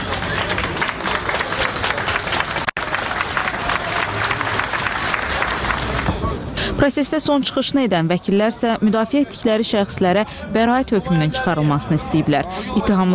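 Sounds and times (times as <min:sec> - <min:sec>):
crowd clapping outside a courthouse in support of defendants: 0:00.0 - 0:06.2
speech: 0:06.8 - 0:13.1.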